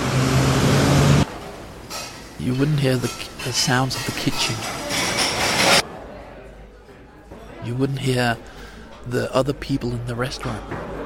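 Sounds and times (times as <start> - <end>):
car traffic rumble on a street: 0.0 - 1.3
speech: 2.4 - 4.8, 7.7 - 11.0.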